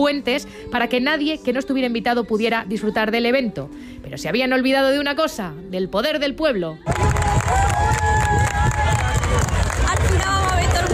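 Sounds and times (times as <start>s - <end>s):
speech: 0.0s - 7.7s
crowd applauding: 6.9s - 10.9s.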